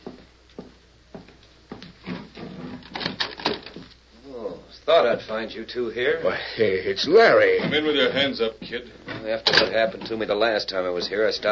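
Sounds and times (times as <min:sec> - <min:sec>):
door being opened with rattling latch: 0:02.1 - 0:03.9
speech: 0:04.9 - 0:11.5.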